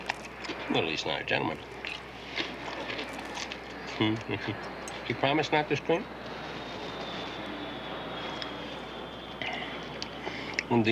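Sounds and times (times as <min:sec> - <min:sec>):
large airplane flying low overhead: 0:00.0 - 0:10.8
speech: 0:00.7 - 0:01.8, 0:04.0 - 0:06.2, 0:10.7 - 0:10.8.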